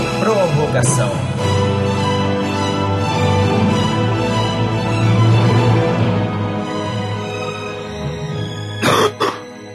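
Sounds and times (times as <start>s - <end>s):
jingle music: 0.0s - 8.8s
speech: 0.2s - 1.5s
person coughing at end of jingle: 8.8s - 9.5s.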